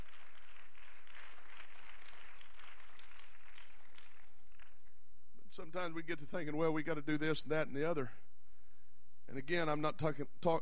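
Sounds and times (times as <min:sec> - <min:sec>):
audience clapping: 0:00.0 - 0:05.0
speech: 0:05.6 - 0:08.2, 0:09.3 - 0:10.5.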